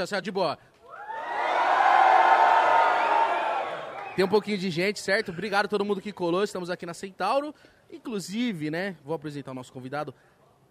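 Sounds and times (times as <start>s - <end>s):
speech: 0.0s - 0.8s, 4.2s - 10.3s
live audience cheering and shouting greetings: 0.9s - 4.4s.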